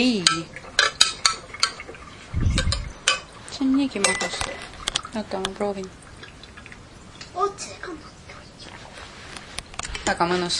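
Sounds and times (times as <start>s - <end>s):
speech: 0.0s - 0.6s, 3.6s - 4.6s, 5.2s - 6.0s, 7.4s - 8.1s, 10.1s - 10.5s
tablespoon clinking against a pot while stirring food: 0.1s - 1.8s, 2.6s - 3.3s, 4.0s - 4.6s
low rumbling scrape: 2.2s - 3.0s.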